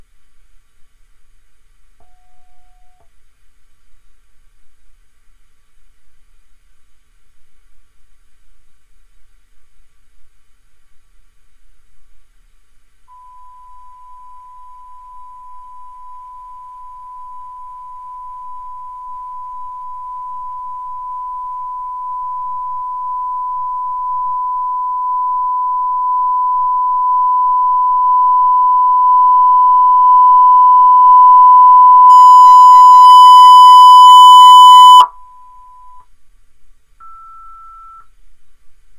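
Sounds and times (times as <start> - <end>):
Alesis device noise floor: 13.1 - 36.0.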